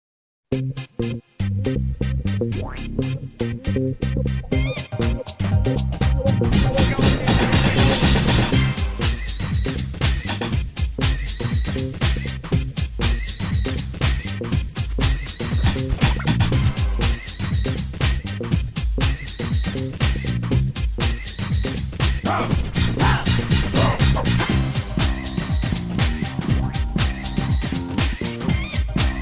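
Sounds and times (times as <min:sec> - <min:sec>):
rhythm: 0:00.6 - 0:29.2.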